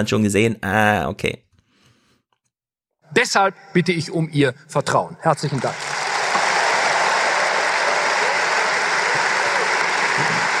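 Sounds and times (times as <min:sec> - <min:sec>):
speech: 0:00.0 - 0:01.5, 0:03.1 - 0:06.0
lukewarm audience applause: 0:05.5 - 0:10.5.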